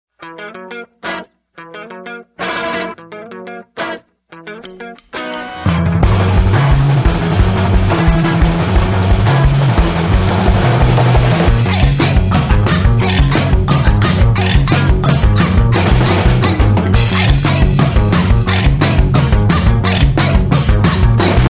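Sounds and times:
instrumental music: 0.2 - 21.4.

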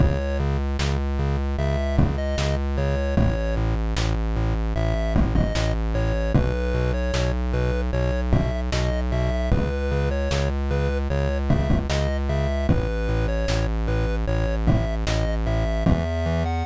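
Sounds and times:
slow 8-bit music: 0.0 - 16.6.

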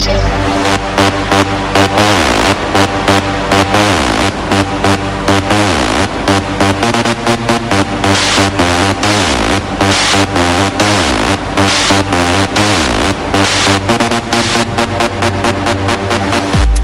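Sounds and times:
electro music: 0.0 - 16.8.

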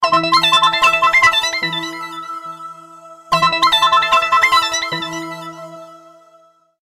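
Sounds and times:
phone ringtone: 0.0 - 2.4, 3.3 - 5.5.

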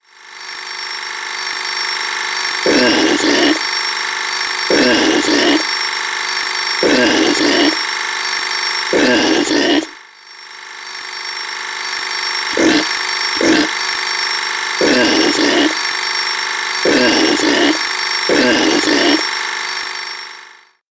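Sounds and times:
clock alarm: 0.0 - 20.7
crazy pig sound: 2.7 - 3.6, 4.7 - 5.7, 6.8 - 7.8, 9.0 - 10.0, 12.6 - 13.8, 14.8 - 15.8, 16.9 - 19.2.

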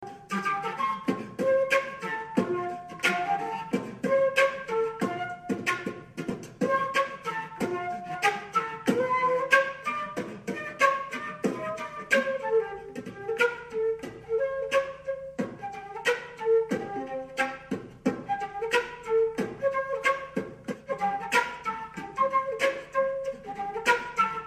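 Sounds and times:
flute beatbox: 0.0 - 24.4.

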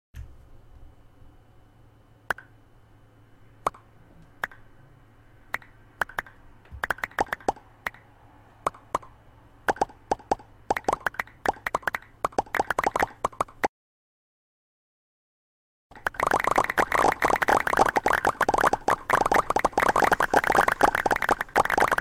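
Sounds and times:
pops: 5.5 - 8.0, 9.7 - 13.7, 15.9 - 22.0.

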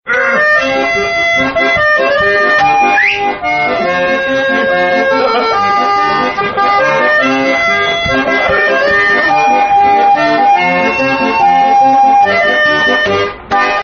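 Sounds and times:
accordion: 0.1 - 13.8
laughter: 2.9 - 9.6.

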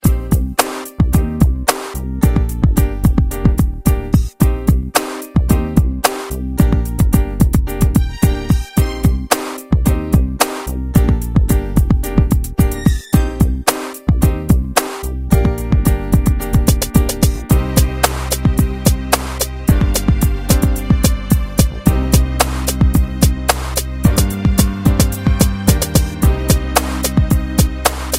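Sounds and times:
rap beat: 0.0 - 28.1.

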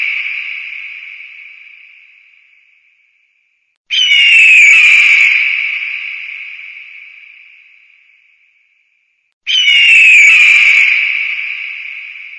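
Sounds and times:
eagle scream: 3.9 - 5.5, 9.5 - 11.3.

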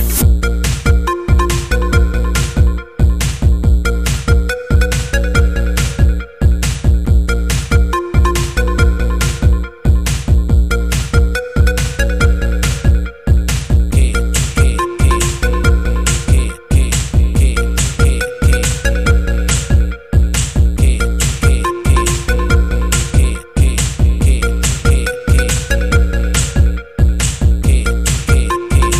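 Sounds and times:
breakbeat drums: 0.0 - 28.9.

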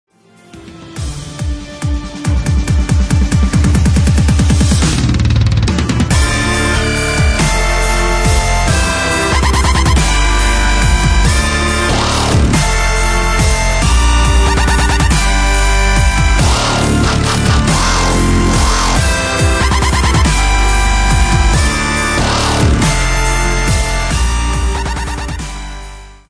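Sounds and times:
dubstep re-orchestration: 0.4 - 26.2.

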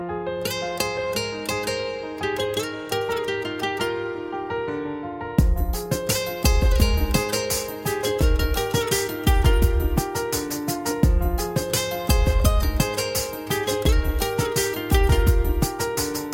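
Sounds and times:
guitar ringtone: 0.4 - 4.3, 5.4 - 10.6, 11.3 - 16.3.

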